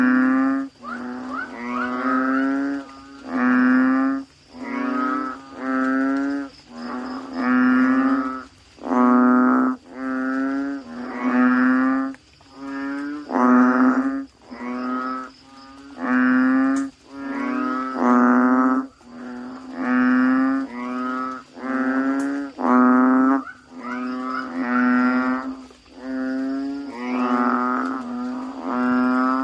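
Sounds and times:
Asian common toad chorus: 0:00.0 - 0:29.4.

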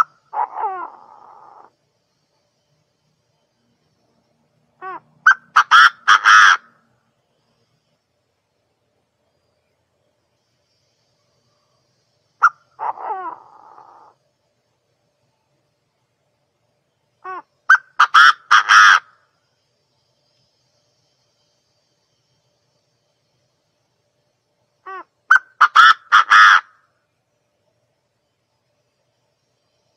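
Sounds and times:
partridge calling: 0:00.0 - 0:01.7, 0:04.8 - 0:06.7, 0:12.4 - 0:14.2, 0:17.2 - 0:19.2, 0:24.8 - 0:26.8.

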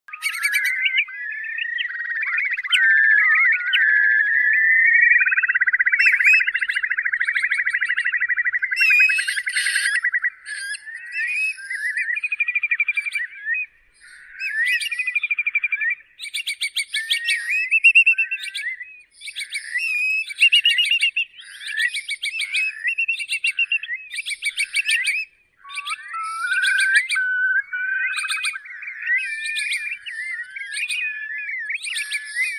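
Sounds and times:
curlew singing: 0:00.1 - 0:32.5.

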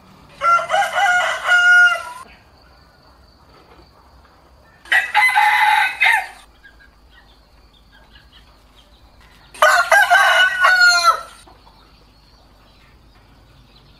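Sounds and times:
rooster crowing: 0:00.3 - 0:02.3, 0:04.8 - 0:06.5, 0:09.5 - 0:11.5.

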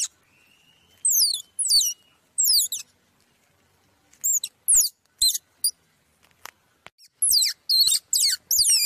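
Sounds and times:
squirrel pup squeaking: 0:00.9 - 0:02.9, 0:04.2 - 0:05.8, 0:07.0 - 0:08.8.

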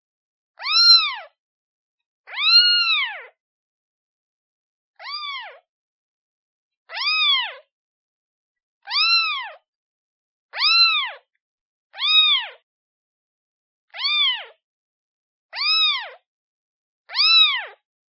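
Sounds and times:
kitten meowing: 0:00.6 - 0:01.4, 0:02.3 - 0:03.4, 0:05.0 - 0:05.6, 0:06.9 - 0:07.7, 0:08.8 - 0:09.6, 0:10.5 - 0:11.3, 0:12.0 - 0:12.6, 0:14.0 - 0:14.6, 0:15.6 - 0:16.2, 0:17.1 - 0:17.8.

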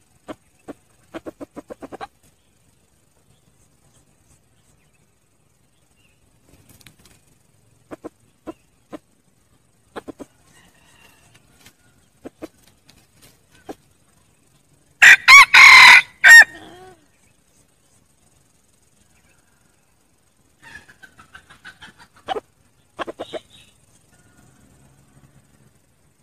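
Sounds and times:
red junglefowl crowing: 0:10.3 - 0:12.0, 0:15.0 - 0:17.0.

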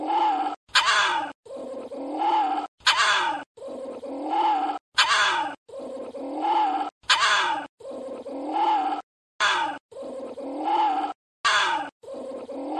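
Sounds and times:
small Indian civet moaning: 0:00.0 - 0:12.7.

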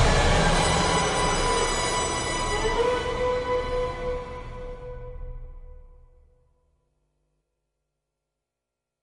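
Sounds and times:
suspenseful and mysterious ending music sting: 0:00.0 - 0:05.6.

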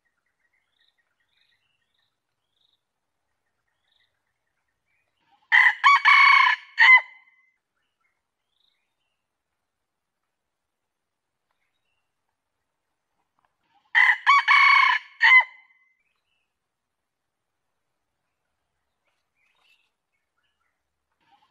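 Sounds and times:
junglefowl crowing: 0:05.5 - 0:07.2, 0:13.9 - 0:15.6.

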